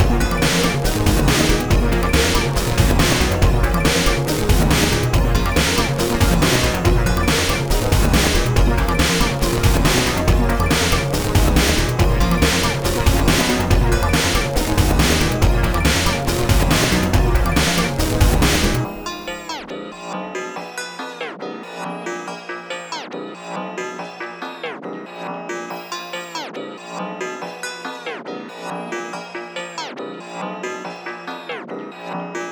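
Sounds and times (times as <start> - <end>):
instrumental music: 0.0 - 19.8.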